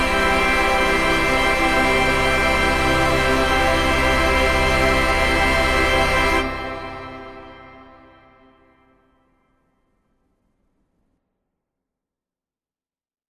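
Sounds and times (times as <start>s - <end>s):
orchestra tutti: 0.0s - 8.7s
English horn solo: 0.0s - 8.8s.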